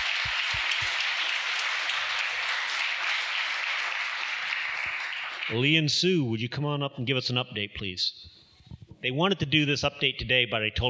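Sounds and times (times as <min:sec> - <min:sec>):
audience applauding: 0:00.0 - 0:05.6
speech: 0:05.5 - 0:08.4, 0:09.0 - 0:10.8.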